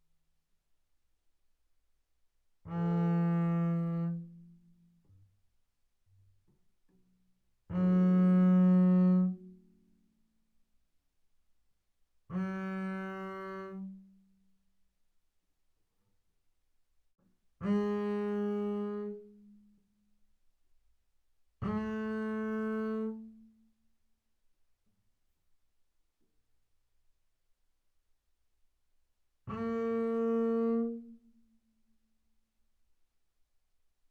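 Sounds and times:
double bass bowed arco sul D fortissimo: 2.7s - 4.6s, 7.7s - 9.5s, 12.3s - 14.0s, 17.6s - 19.4s, 21.6s - 23.3s, 29.5s - 31.1s.

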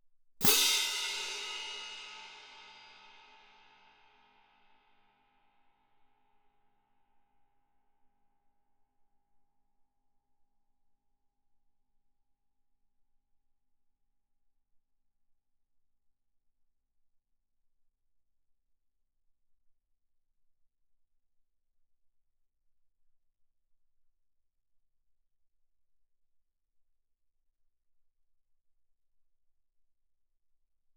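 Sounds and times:
fortissimo orchestral French crash cymbals: 0.4s - 3.8s.

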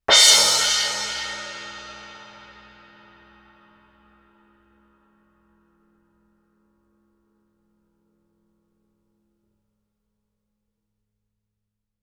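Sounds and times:
suspended cymbal crash with mallet: 0.1s - 4.1s.

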